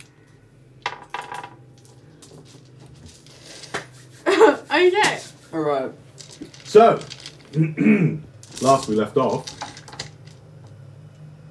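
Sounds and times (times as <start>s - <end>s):
low steady hum: 0.0s - 11.5s
dice being gathered up clattering: 0.8s - 4.0s, 6.1s - 7.6s, 8.2s - 10.4s
speech: 4.8s - 6.0s, 6.7s - 9.5s.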